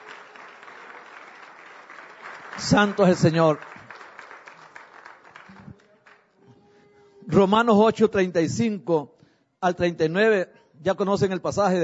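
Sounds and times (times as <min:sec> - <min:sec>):
applause: 0:00.0 - 0:06.4
speech: 0:02.6 - 0:03.7, 0:07.4 - 0:11.8.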